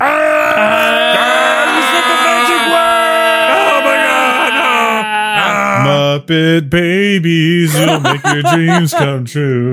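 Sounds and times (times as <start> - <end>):
voices imitating a long horrifying scream: 0.0 - 5.9
laughter: 0.4 - 6.0, 7.7 - 9.4
speech: 6.3 - 9.7.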